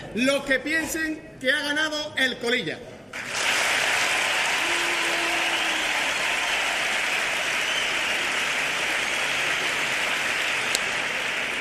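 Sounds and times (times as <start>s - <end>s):
speech: 0.1s - 3.0s
audience applause: 3.2s - 11.5s.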